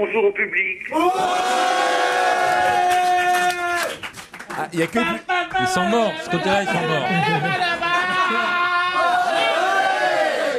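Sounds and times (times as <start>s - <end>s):
speech: 0.0s - 1.9s, 4.6s - 7.8s
audience shouting loudly in greeting: 0.9s - 4.0s, 7.4s - 10.5s
laughter: 5.3s - 9.2s.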